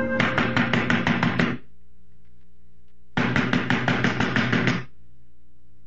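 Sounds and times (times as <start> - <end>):
banging on a door: 0.2 - 1.6, 3.2 - 4.9.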